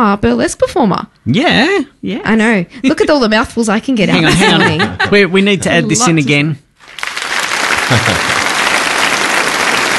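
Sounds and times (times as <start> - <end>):
speech: 0.0 - 6.6, 7.9 - 8.3
laughter: 4.1 - 5.3, 7.8 - 8.6
long applause sound effect: 6.8 - 9.9.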